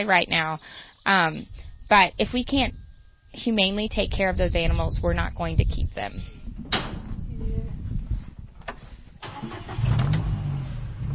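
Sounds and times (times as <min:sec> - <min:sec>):
speech: 0:00.0 - 0:06.8
Gator utility vehicle engine starting and idling on a drought-hit farm: 0:09.2 - 0:11.1.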